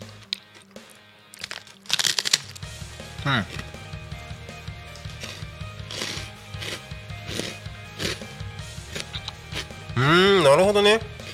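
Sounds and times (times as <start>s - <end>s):
large okaki rice cracker being bitten and chewed: 0.2s - 3.7s, 4.9s - 8.3s
speech: 3.2s - 3.6s, 10.0s - 11.1s.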